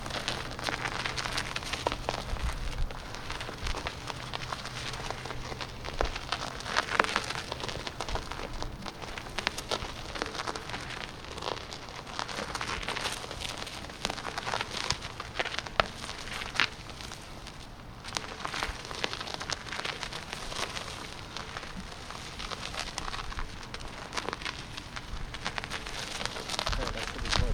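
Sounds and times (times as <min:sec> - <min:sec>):
tire rolling: 0:00.0 - 0:27.5.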